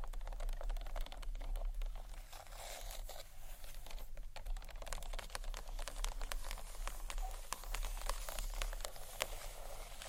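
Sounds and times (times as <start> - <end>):
fingernail scratching and tapping on books: 0.0 - 10.0.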